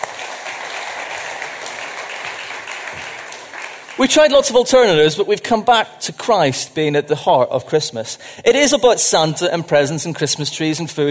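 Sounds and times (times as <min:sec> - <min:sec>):
audience applause: 0:00.0 - 0:04.4
speech: 0:04.0 - 0:11.0.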